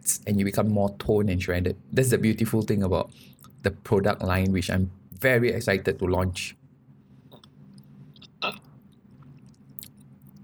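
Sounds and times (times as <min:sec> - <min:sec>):
speech: 0:00.1 - 0:06.6
person chewing food: 0:07.3 - 0:10.4.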